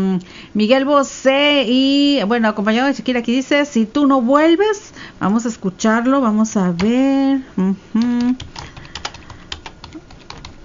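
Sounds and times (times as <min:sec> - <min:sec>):
speech: 0:00.0 - 0:08.7
typing on a computer keyboard: 0:08.0 - 0:10.6.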